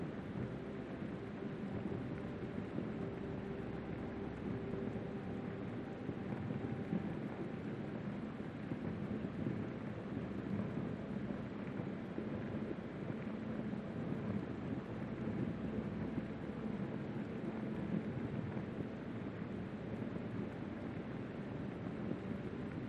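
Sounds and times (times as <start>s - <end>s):
soft peaceful piano music: 0.0s - 22.8s
steady dense rain: 0.0s - 22.8s.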